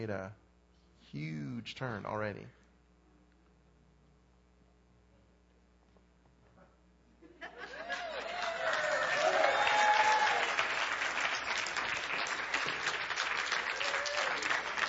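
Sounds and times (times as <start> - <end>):
speech: 0.0 - 0.4, 1.1 - 2.6
audience applause: 7.7 - 14.8.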